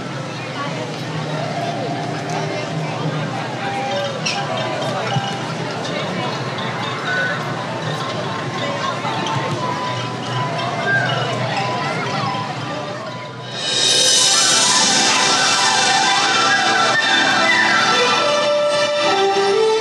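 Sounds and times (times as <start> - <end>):
crowd chatter at Small World Mall: 0.0 - 19.7
fireworks loud crackling hiss: 13.5 - 17.5.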